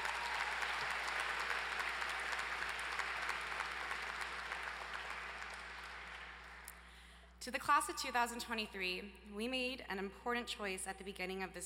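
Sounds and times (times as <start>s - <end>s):
audience applause: 0.0s - 6.7s
speech: 7.4s - 11.6s.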